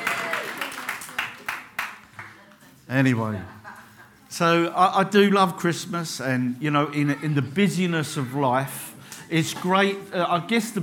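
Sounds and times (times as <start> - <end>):
audience applause at a talk: 0.0 - 2.4
speech: 2.9 - 3.6, 4.3 - 10.8.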